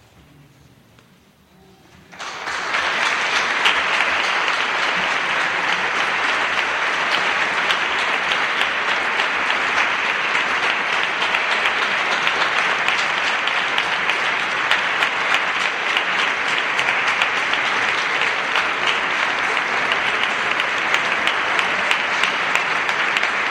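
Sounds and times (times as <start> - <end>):
applause for an award presentation: 2.1 - 23.4.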